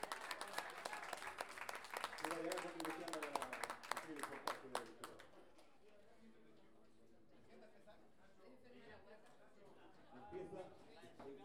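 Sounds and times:
audience applause: 0:00.0 - 0:05.2
speech: 0:02.3 - 0:03.3, 0:04.1 - 0:05.2.

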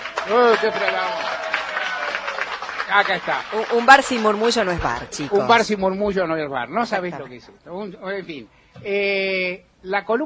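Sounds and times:
people shouting and cheering: 0:00.0 - 0:05.6
audience applauding: 0:00.0 - 0:05.7
speech: 0:00.3 - 0:01.5, 0:02.9 - 0:10.2.

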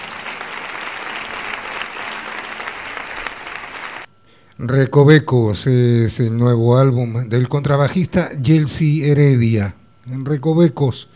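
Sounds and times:
audience applause: 0:00.0 - 0:04.1
speech: 0:04.6 - 0:11.1.

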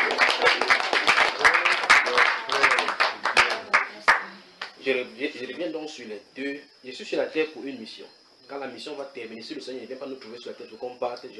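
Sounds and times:
church audience applauding during a service: 0:00.0 - 0:04.3
speech: 0:04.9 - 0:11.3.

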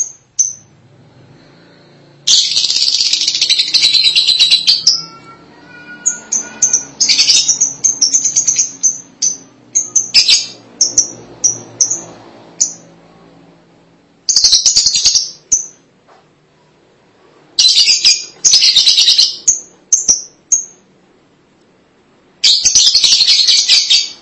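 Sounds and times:
lovebird calling: 0:02.3 - 0:05.3, 0:05.9 - 0:12.9, 0:14.3 - 0:15.8, 0:17.6 - 0:20.8, 0:22.4 - 0:24.2.

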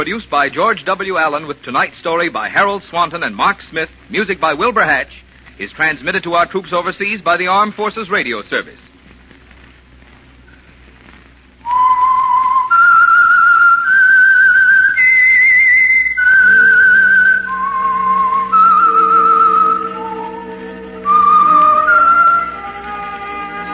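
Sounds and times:
speech: 0:00.0 - 0:08.9
whistled theme signal: 0:11.6 - 0:23.7.

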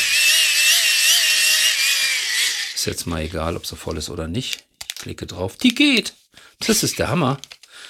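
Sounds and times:
hand-crank flashlight being wound, whirring: 0:00.0 - 0:02.8
speech: 0:02.8 - 0:07.6.

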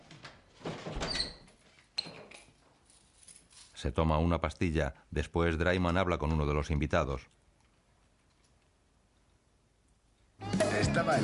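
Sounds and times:
house door being pulled shut: 0:00.6 - 0:02.3
speech: 0:03.8 - 0:07.4.

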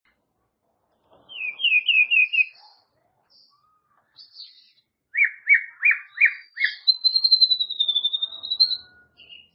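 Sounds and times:
White-rumped shama song with whistles: 0:01.3 - 0:02.8, 0:03.4 - 0:09.5.

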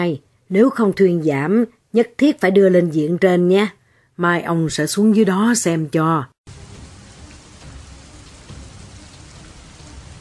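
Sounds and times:
speech: 0:00.0 - 0:06.6
heavy rain pouring down: 0:06.5 - 0:10.1.

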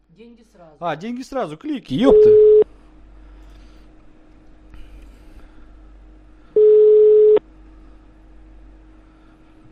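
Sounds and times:
speech: 0:00.2 - 0:02.6
telephone line tone while a call is being placed: 0:02.1 - 0:02.6, 0:06.6 - 0:07.4.

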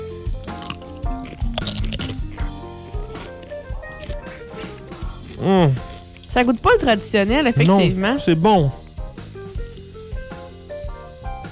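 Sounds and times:
steady music: 0:00.0 - 0:11.4
someone biting into a yellow tortilla chip during a taste test: 0:00.4 - 0:05.4
speech: 0:05.4 - 0:08.8.

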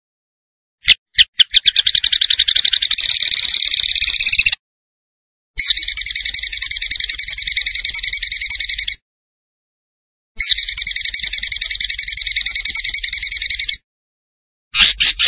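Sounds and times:
zebra finch pulsed trills: 0:00.8 - 0:04.6, 0:05.6 - 0:09.0, 0:10.4 - 0:13.8.

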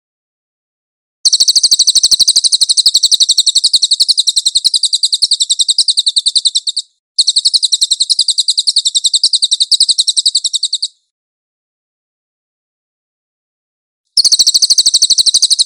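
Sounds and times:
cililin bird singing shrill trill: 0:01.3 - 0:11.1, 0:14.2 - 0:15.6.

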